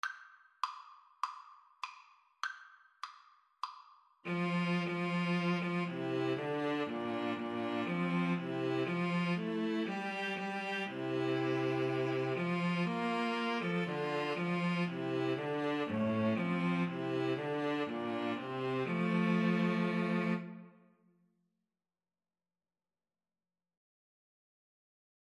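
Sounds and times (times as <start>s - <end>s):
string trio playing: 4.3s - 20.7s.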